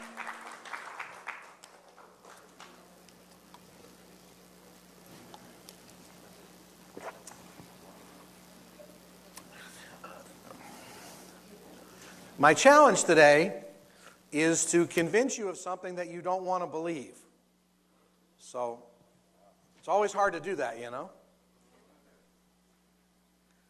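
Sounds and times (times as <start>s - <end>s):
audience applauding: 0.0s - 3.0s
low steady hum: 0.0s - 23.6s
speech: 12.4s - 13.6s, 14.3s - 17.2s, 18.5s - 18.9s, 19.9s - 21.2s.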